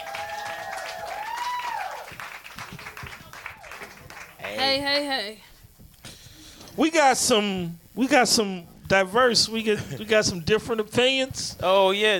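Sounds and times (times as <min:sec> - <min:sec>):
loud whooping cheer: 0:00.0 - 0:03.8
audience clapping: 0:00.0 - 0:04.8
speech: 0:04.5 - 0:05.5, 0:06.8 - 0:12.1.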